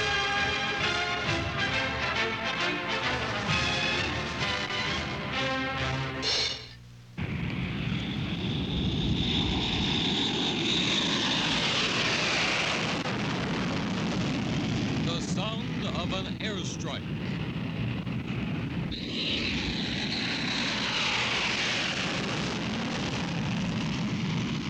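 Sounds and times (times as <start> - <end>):
military aircraft engine roar over the Libyan desert: 0.0 - 24.6
fainter warbling engine sounds: 7.2 - 24.6.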